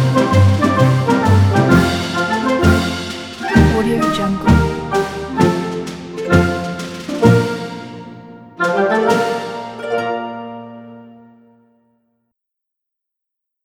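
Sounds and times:
heroic music: 0.0s - 10.3s.

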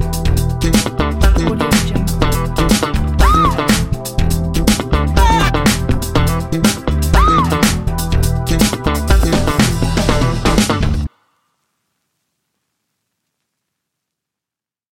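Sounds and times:
funky music: 0.0s - 11.1s.

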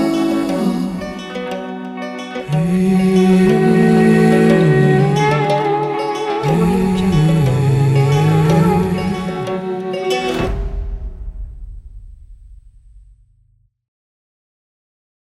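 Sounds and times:
Middle East song: 0.0s - 11.8s.

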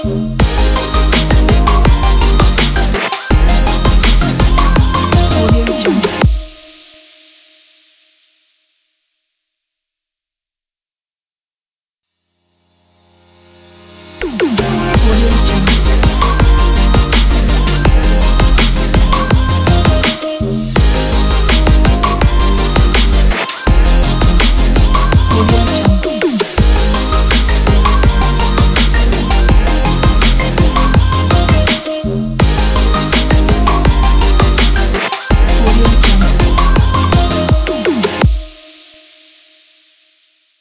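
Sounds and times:
future bass music: 0.0s - 6.4s, 14.2s - 38.4s.

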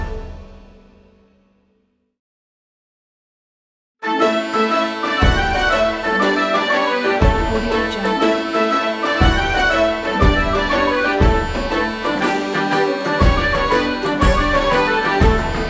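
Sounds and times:
funny tavern song: 4.0s - 15.6s.

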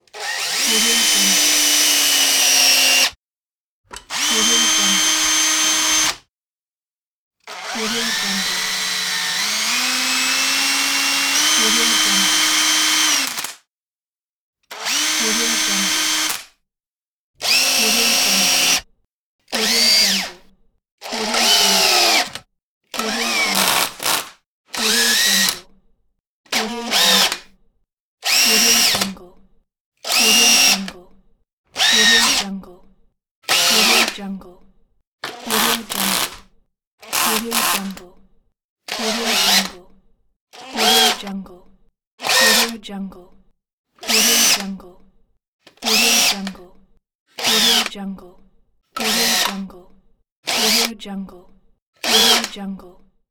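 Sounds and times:
cordless drill: 0.0s - 3.2s, 4.0s - 6.3s, 7.4s - 13.6s, 14.7s - 16.5s, 17.4s - 18.8s, 19.5s - 25.6s, 26.5s - 27.5s, 28.2s - 29.2s, 30.0s - 31.0s, 31.8s - 32.4s, 33.4s - 34.2s, 35.2s - 38.0s, 38.9s - 39.8s, 40.6s - 41.2s, 42.2s - 42.7s, 44.0s - 44.7s, 45.7s - 46.6s, 47.3s - 47.9s, 49.0s - 49.6s, 50.4s - 50.9s, 52.0s - 52.5s.

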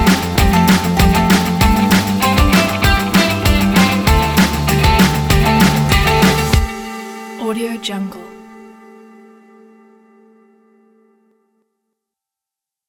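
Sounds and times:
energetic upbeat happy indie rock music: 0.0s - 7.4s.

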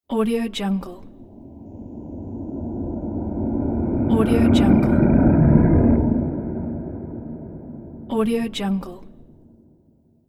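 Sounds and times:
horror music: 1.3s - 8.8s.

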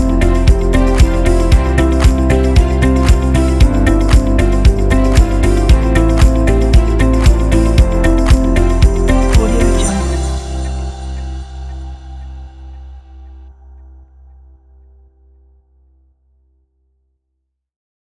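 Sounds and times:
corporate motivational background music: 0.0s - 13.5s.

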